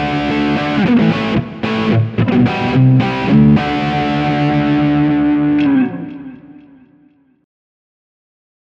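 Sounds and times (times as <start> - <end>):
Telecaster electroacoustic guitar front pickup clean and dirty: 0.0 - 6.9.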